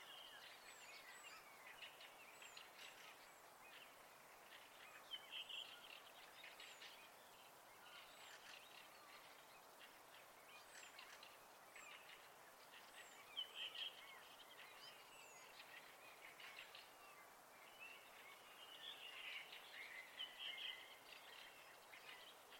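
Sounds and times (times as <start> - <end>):
birds singing at night in spring: 0.0 - 22.5.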